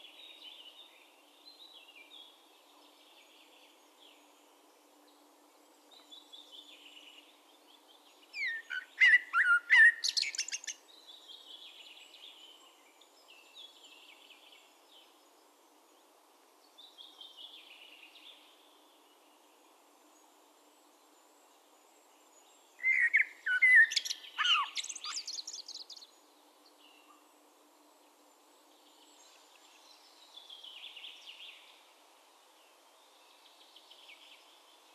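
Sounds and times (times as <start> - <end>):
Common blackbird singing mellow whistled phrase: 8.4 - 10.1, 22.9 - 25.2.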